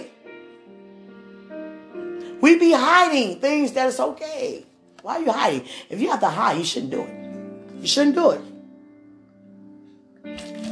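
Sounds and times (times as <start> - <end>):
speech: 2.4 - 7.2, 7.8 - 8.5
wine being poured into a glass: 10.3 - 10.7.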